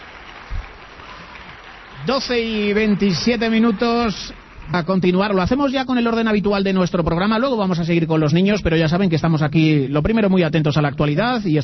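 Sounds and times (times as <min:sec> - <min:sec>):
small group applauding guests in a radio studio: 0:00.0 - 0:06.6
speech: 0:02.0 - 0:11.6.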